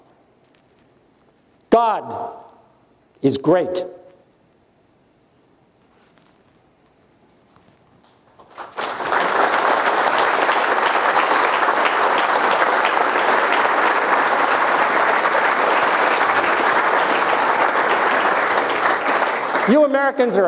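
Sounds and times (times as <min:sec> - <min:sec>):
speech: 0:01.8 - 0:02.5, 0:03.2 - 0:04.0, 0:20.1 - 0:20.4
audience applause from a large crowd: 0:08.3 - 0:20.4.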